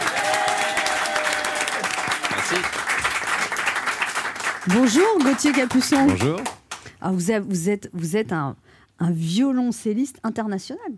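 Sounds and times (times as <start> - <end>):
audience applause: 0.0 - 6.6
speech: 2.5 - 3.1, 4.6 - 10.9.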